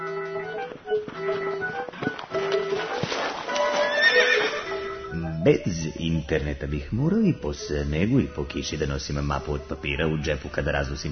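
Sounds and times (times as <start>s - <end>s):
horse hooves clip-clopping: 0.0s - 5.0s
horse whinnying: 2.0s - 5.0s
speech: 5.4s - 11.0s.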